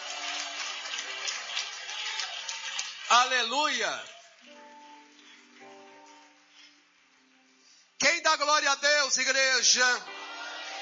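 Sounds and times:
crowd applauding: 0:00.0 - 0:06.6, 0:10.1 - 0:10.8
speech: 0:03.1 - 0:04.2, 0:08.3 - 0:10.2.

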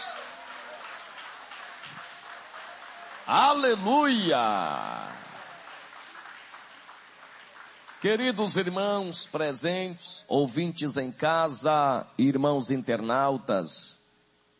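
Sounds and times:
crowd clapping: 0:00.0 - 0:09.2
speech: 0:03.3 - 0:05.1, 0:08.0 - 0:14.0.

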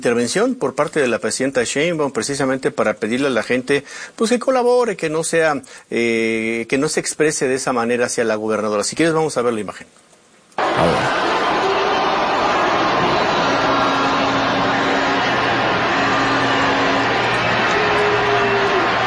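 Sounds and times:
speech: 0:00.0 - 0:10.1
crowd booing a speaker: 0:10.6 - 0:19.0.

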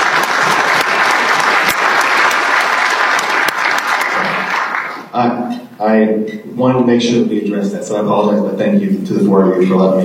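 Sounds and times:
audience applause: 0:00.0 - 0:05.1
speech: 0:05.2 - 0:10.0.

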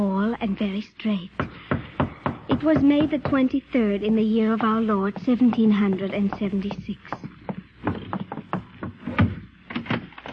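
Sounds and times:
speech: 0:00.0 - 0:01.6, 0:02.5 - 0:07.2
knocking on a wooden door: 0:01.4 - 0:03.6, 0:04.4 - 0:09.4.

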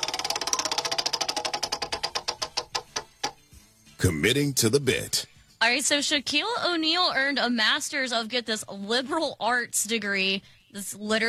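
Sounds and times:
prize wheel being spun: 0:00.0 - 0:03.4
speech: 0:04.0 - 0:11.2.

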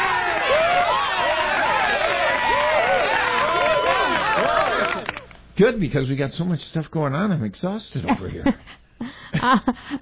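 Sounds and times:
canned applause effect crowd cheering and whooping: 0:00.0 - 0:05.2
clapping: 0:03.8 - 0:05.4
speech: 0:05.6 - 0:08.7, 0:09.4 - 0:10.0.

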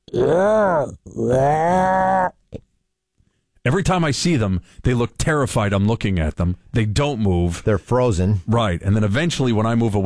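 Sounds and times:
person imitating a deer's guttural call: 0:00.0 - 0:02.6
speech: 0:00.1 - 0:02.3, 0:03.6 - 0:10.0.

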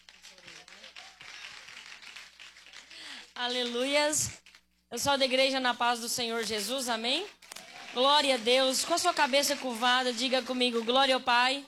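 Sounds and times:
crowd clapping: 0:00.0 - 0:04.6, 0:07.3 - 0:11.4
speech: 0:03.4 - 0:11.6.

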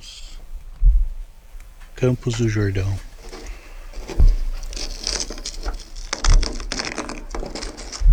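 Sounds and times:
dull low thumps: 0:00.8 - 0:08.1
frozen leaf peeled off an icy car: 0:01.6 - 0:08.1
speech: 0:02.0 - 0:03.1.

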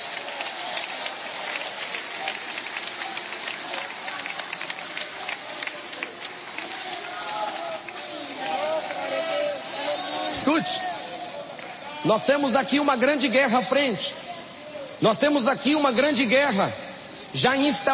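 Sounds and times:
audience clapping: 0:00.0 - 0:11.8
speech: 0:12.1 - 0:14.2, 0:15.0 - 0:17.9.

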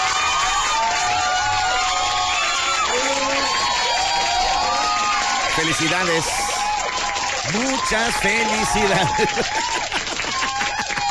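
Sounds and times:
recorded applause and cheering: 0:00.0 - 0:11.0
speech: 0:05.7 - 0:06.5, 0:07.4 - 0:09.9
laughter: 0:08.0 - 0:11.0.

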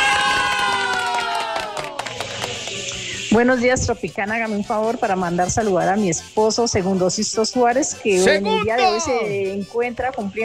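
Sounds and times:
recorded crowd cheering and shouting as a bravo sound effect: 0:00.0 - 0:02.1
speech: 0:03.3 - 0:10.4.

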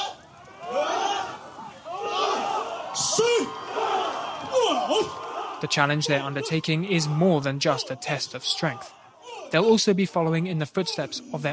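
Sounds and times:
villagers shouting together while lifting a boat: 0:00.0 - 0:07.8, 0:08.7 - 0:09.8
speech: 0:03.2 - 0:03.7, 0:04.8 - 0:11.5.

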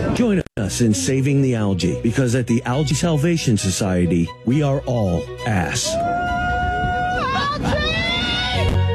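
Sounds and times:
speech: 0:00.2 - 0:06.3
crowd of people screaming: 0:05.8 - 0:08.8.

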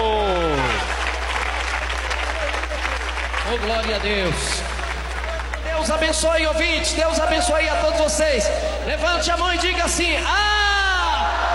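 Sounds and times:
audience clapping: 0:00.0 - 0:06.2
speech: 0:03.5 - 0:04.8, 0:05.8 - 0:10.5.

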